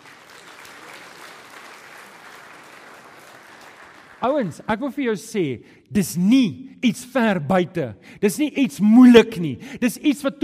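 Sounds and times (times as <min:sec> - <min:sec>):
audience applause: 0:00.0 - 0:04.6
speech: 0:04.2 - 0:10.4.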